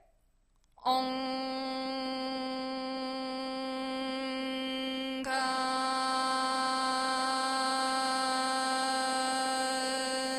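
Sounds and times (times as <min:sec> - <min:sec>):
chanted mantra: 0:00.8 - 0:10.3.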